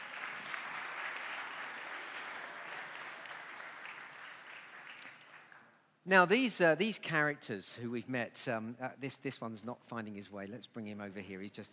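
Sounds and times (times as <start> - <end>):
audience applause: 0.0 - 5.7
speech: 6.1 - 11.7.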